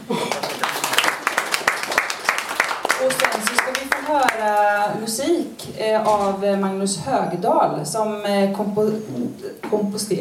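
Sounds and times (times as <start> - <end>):
audience applause: 0.0 - 4.4
speech: 4.1 - 10.1.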